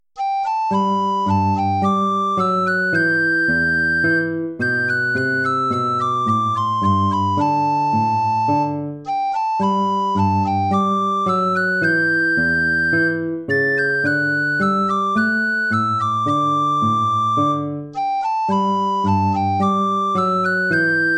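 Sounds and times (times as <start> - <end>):
gavotte: 0.2 - 21.1.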